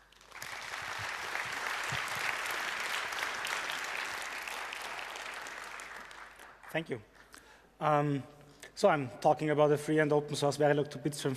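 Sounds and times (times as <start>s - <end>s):
audience applause: 0.0s - 6.7s
speech: 6.7s - 7.2s, 7.8s - 11.3s.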